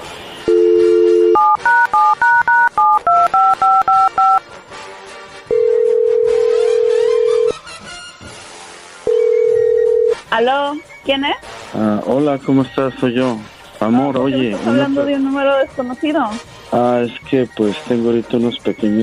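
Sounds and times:
telephone dial tone: 0:00.5 - 0:04.4, 0:05.5 - 0:07.5, 0:09.1 - 0:10.2
telephone keypad DTMF beeps: 0:00.5 - 0:04.4
speech: 0:11.1 - 0:19.0.

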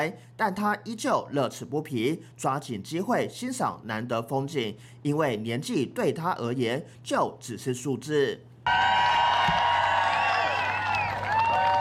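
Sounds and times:
speech: 0:00.0 - 0:09.1
crowd cheering: 0:08.6 - 0:11.8.

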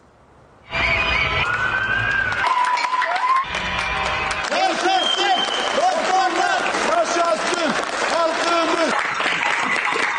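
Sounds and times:
shrill whistles: 0:00.7 - 0:03.5, 0:04.8 - 0:05.9
crowd applauding and cheering from balconies: 0:00.8 - 0:10.1.

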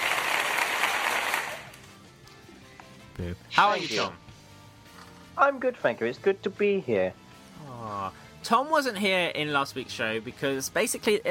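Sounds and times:
crowd applauding: 0:00.0 - 0:01.8
speech: 0:03.2 - 0:04.3, 0:05.4 - 0:07.8, 0:08.4 - 0:11.2.

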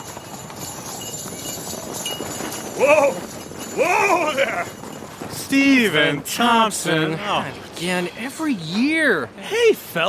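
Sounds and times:
sleigh bells: 0:00.0 - 0:06.8
speech: 0:02.8 - 0:04.8, 0:05.5 - 0:10.0.

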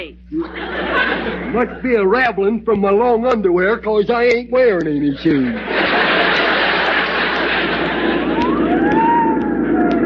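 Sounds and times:
laughter: 0:00.3 - 0:02.5, 0:03.6 - 0:08.7
speech: 0:01.5 - 0:05.8
fire truck siren wailing: 0:08.2 - 0:10.0.

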